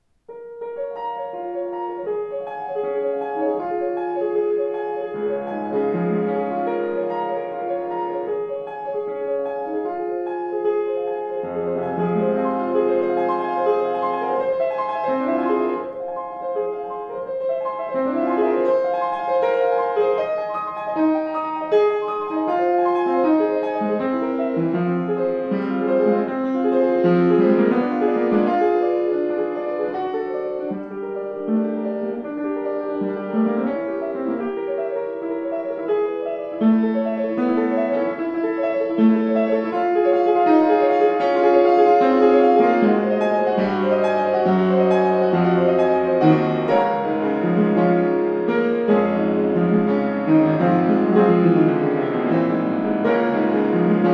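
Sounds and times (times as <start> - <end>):
Schimmel piano: 0.0 - 54.1.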